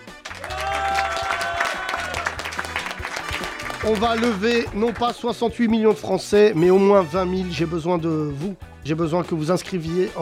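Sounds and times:
audience applauding: 0.0 - 5.2
audience cheering: 0.2 - 4.6
speech: 3.8 - 10.2.

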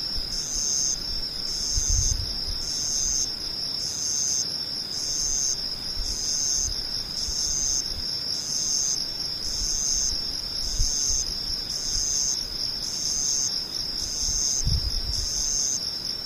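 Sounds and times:
insects trilling: 0.0 - 16.2.

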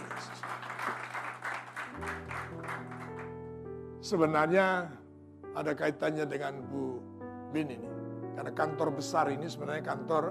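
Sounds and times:
audience applause: 0.0 - 3.3
speech: 4.1 - 5.0, 5.6 - 10.2.

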